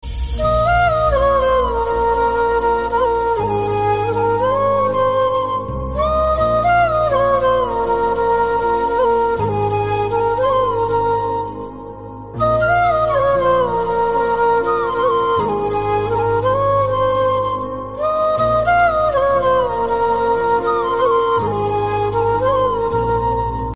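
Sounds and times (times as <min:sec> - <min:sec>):
flute: 0:00.0 - 0:23.7.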